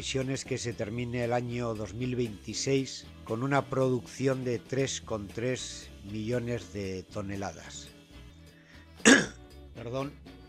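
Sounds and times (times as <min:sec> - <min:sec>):
speech: 0:00.0 - 0:07.9, 0:09.0 - 0:10.4
smoker with an irritated throat clearing it and coughing: 0:09.0 - 0:09.4.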